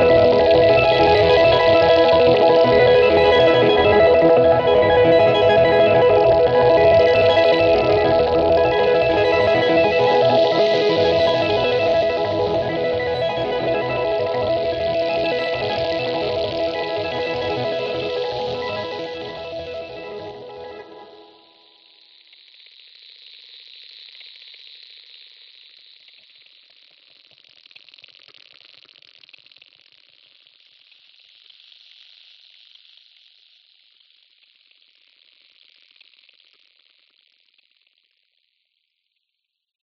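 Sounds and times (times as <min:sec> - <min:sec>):
ambient music: 0:00.0 - 0:21.5.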